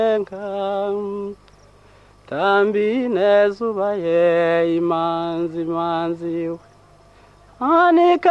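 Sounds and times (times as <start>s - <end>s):
praise song singing in Burundi: 0.0s - 8.2s.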